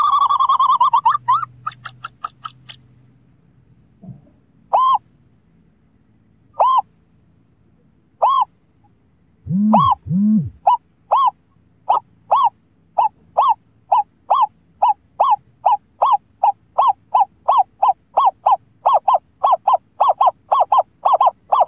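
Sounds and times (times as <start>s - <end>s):
scops owl hooting: 0.0s - 2.8s, 4.7s - 5.1s, 6.5s - 6.9s, 8.2s - 8.6s, 9.4s - 21.6s.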